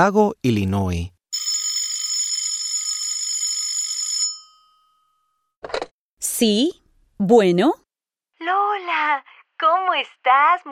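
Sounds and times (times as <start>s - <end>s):
speech: 0.0s - 1.2s, 6.4s - 7.8s, 8.4s - 10.7s
telephone ringing with a metallic bell tone: 1.3s - 5.6s.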